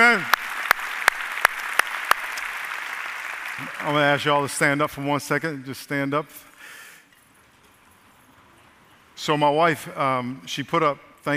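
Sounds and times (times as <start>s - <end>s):
speech: 0.0s - 0.4s, 3.6s - 6.5s, 9.2s - 11.3s
loud sharp claps: 0.0s - 4.4s
audience applause: 0.0s - 4.6s.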